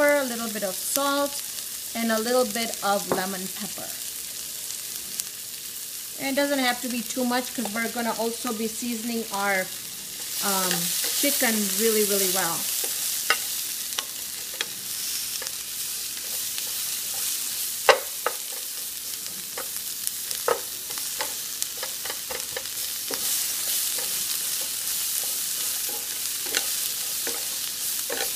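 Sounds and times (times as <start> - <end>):
vegetables stir-frying in a pan: 0.0 - 28.3
speech: 0.6 - 4.0, 6.2 - 9.8, 10.4 - 12.7
utensil scraping a pan while stirring: 10.1 - 28.3.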